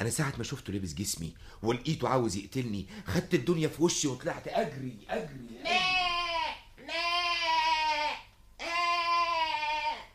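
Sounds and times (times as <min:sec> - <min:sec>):
speech: 0:00.0 - 0:05.8
goat bleating: 0:05.6 - 0:10.1.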